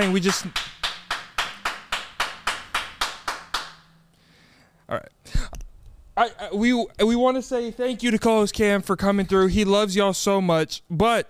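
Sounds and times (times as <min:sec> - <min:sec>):
speech: 0:00.0 - 0:00.7, 0:06.2 - 0:11.2
one person clapping a brisk beat: 0:00.0 - 0:03.9.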